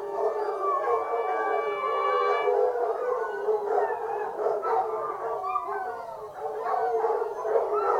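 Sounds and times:
foxhounds in full cry howling and yelping: 0.0 - 7.9.

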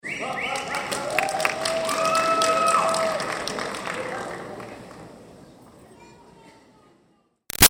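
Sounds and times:
teen graduation crowd whistling: 0.0 - 0.8
teen graduation crowd clapping: 0.5 - 5.0.

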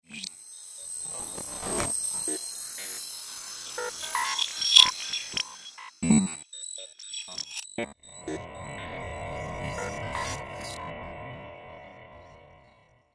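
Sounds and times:
alien data search effect: 0.1 - 10.8.

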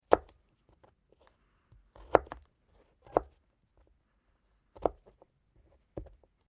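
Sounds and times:
knife chopping garlic during food preparation: 0.0 - 0.4, 1.9 - 3.4, 4.7 - 5.1.

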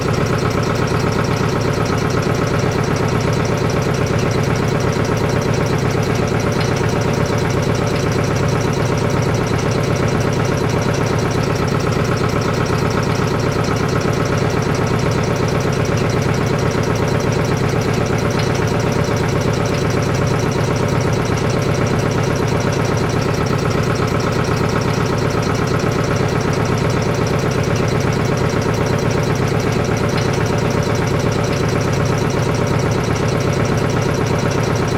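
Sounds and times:
industrial air compressor motor running, heard from underneath: 0.0 - 34.9.

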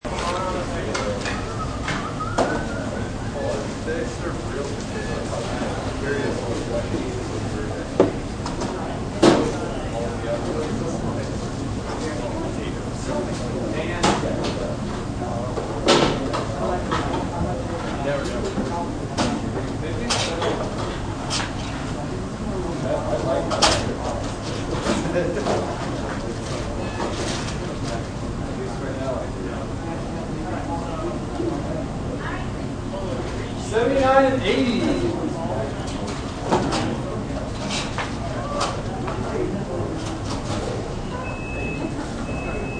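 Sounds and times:
fast food restaurant ambience: 0.0 - 42.7.

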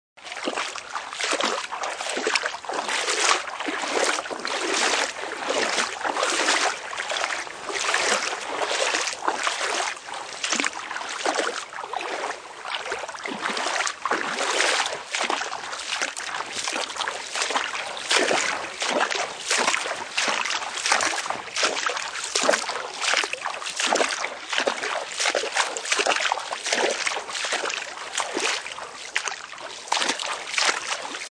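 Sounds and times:
walking through water: 0.2 - 31.3.

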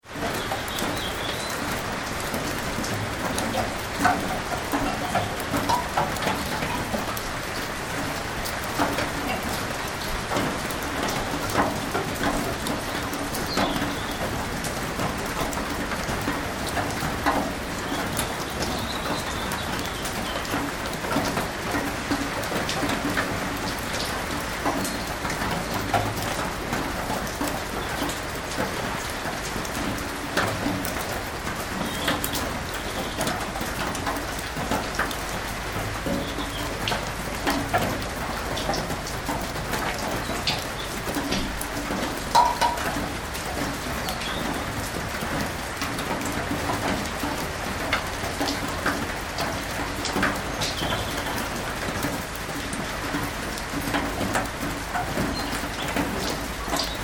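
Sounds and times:
big rain drips on a metal shed roof: 0.0 - 57.0
steady rain on a metal shed roof: 0.0 - 57.0.

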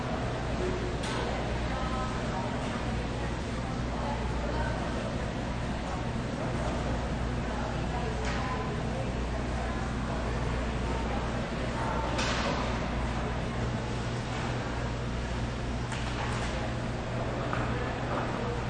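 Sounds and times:
food court ambience: 0.0 - 18.6.

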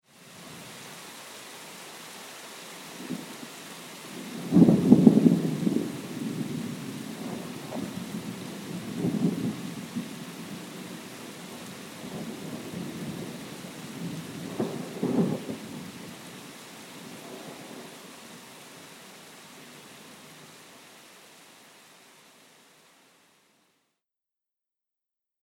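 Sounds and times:
heavy rain: 0.0 - 23.6
thunder: 4.2 - 10.9, 14.0 - 15.9.

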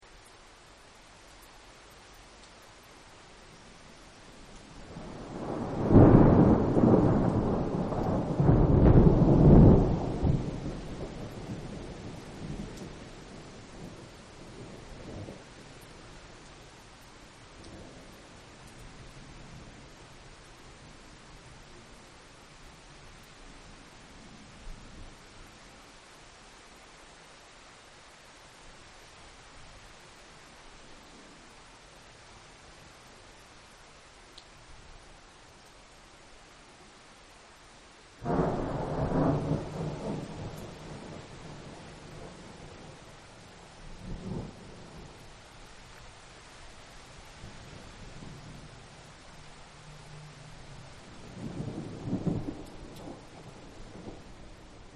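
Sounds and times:
rain: 0.0 - 54.9
thunder: 5.0 - 13.0, 38.2 - 43.0, 51.2 - 54.4.

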